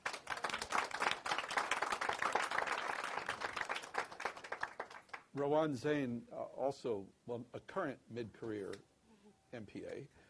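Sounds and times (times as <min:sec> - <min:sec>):
audience applauding to welcome a speaker at a talk on community organizing: 0:00.0 - 0:05.5
speech: 0:05.4 - 0:08.9, 0:09.5 - 0:10.2.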